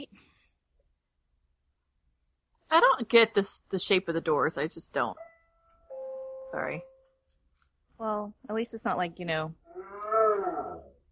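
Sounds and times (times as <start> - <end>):
speech: 2.7 - 5.3, 6.5 - 6.9, 8.0 - 9.6
dog howling at doorbell: 9.7 - 11.0.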